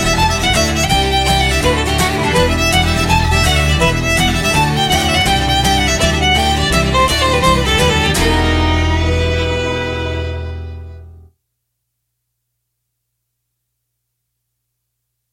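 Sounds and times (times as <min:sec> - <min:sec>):
jig tune: 0:00.0 - 0:11.2.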